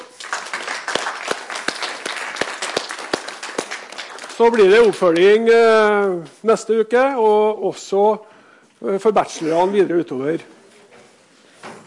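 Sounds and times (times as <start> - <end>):
audience applause: 0.0 - 5.2
speech: 4.4 - 10.6.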